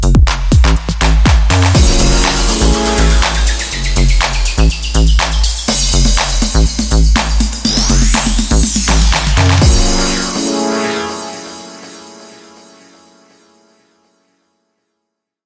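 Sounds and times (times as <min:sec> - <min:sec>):
drums: 0:00.0 - 0:10.5.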